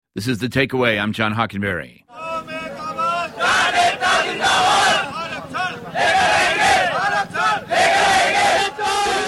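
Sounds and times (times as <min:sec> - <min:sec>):
speech: 0:00.2 - 0:02.3
protest crowd shouting and chanting: 0:02.1 - 0:09.2.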